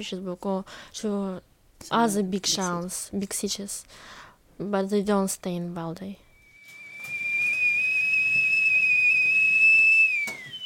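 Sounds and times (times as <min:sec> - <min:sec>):
speech: 0:00.0 - 0:06.2
tea kettle whistling: 0:06.3 - 0:10.6.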